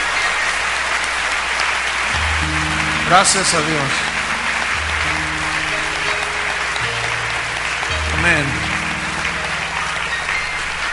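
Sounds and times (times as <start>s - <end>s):
church congregation applauding in praise of the Lord: 0.0s - 10.9s
speech: 3.1s - 4.1s.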